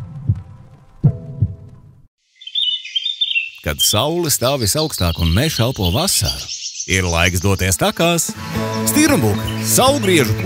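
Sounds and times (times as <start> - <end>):
heartbeat: 0.0 - 1.9
speech: 3.6 - 10.4.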